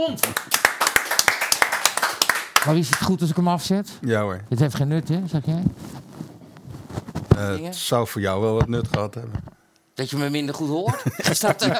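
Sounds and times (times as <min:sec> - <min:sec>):
speech: 0:00.0 - 0:00.7, 0:02.6 - 0:06.1, 0:07.4 - 0:11.7
audience applause: 0:00.3 - 0:02.8
laughter: 0:10.8 - 0:11.7.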